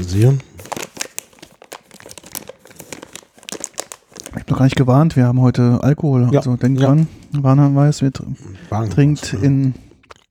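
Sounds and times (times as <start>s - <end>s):
speech: 0.0s - 0.5s, 4.5s - 9.8s
snack mix bag crinkling and rustling: 0.0s - 4.8s, 10.0s - 10.2s.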